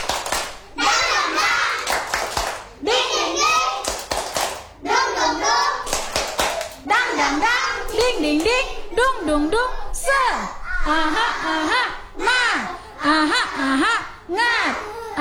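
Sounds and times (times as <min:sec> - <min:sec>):
sharp hand claps: 0:00.0 - 0:02.8, 0:03.6 - 0:04.8, 0:05.6 - 0:07.1, 0:07.9 - 0:08.6
children chanting a rhythmic clapping song: 0:00.0 - 0:15.1
laughter: 0:10.7 - 0:15.1.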